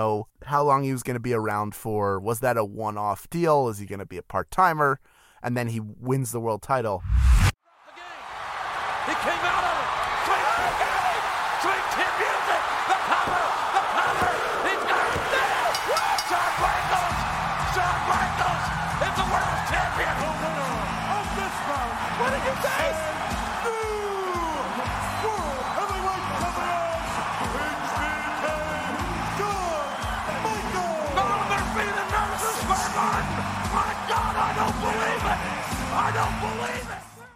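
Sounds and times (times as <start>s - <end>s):
speech: 0.0s - 7.4s, 9.0s - 10.0s
arena crowd cheering loudly: 7.6s - 37.3s.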